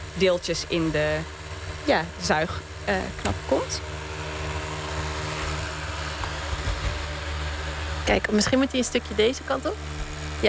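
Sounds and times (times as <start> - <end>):
electric kettle heating water: 0.0 - 10.4
speech: 0.2 - 4.0, 8.1 - 10.4.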